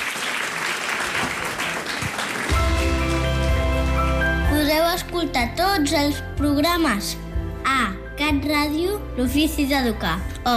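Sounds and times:
applause: 0.0s - 4.5s
speech: 5.2s - 10.5s.

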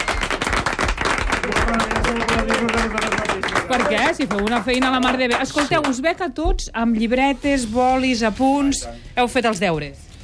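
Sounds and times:
audience applause: 0.0s - 6.0s
speech: 3.7s - 10.1s.

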